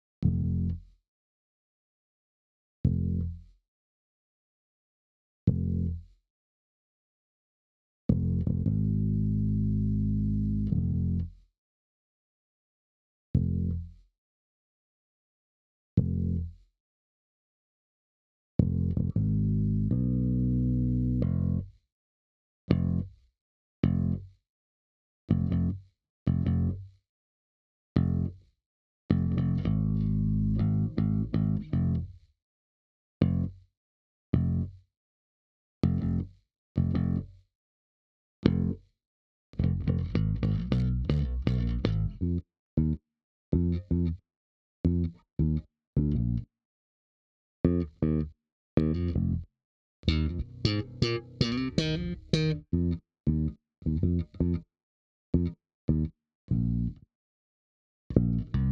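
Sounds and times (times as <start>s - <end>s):
bass: 0.2s - 1.0s, 2.8s - 3.6s, 5.5s - 6.2s, 8.1s - 11.5s, 13.3s - 14.1s, 16.0s - 16.7s, 18.6s - 21.8s, 22.7s - 24.4s, 25.3s - 27.0s, 28.0s - 32.3s, 33.2s - 33.7s, 34.3s - 34.8s, 35.8s - 37.5s, 38.4s - 38.9s, 39.6s - 44.2s, 44.8s - 46.5s, 47.6s - 54.7s, 55.4s - 57.1s, 58.1s - 58.7s.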